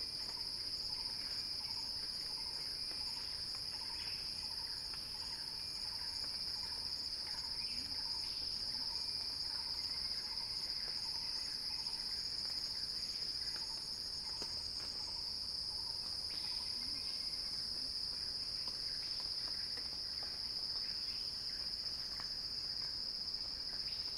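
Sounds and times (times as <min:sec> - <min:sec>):
cicadas buzzing: 0:00.0 - 0:24.1.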